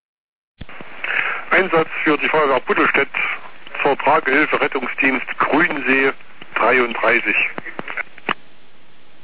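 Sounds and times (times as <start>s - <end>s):
static-filled radio channel: 0.6s - 8.1s
speech: 2.2s - 2.6s, 4.2s - 7.6s.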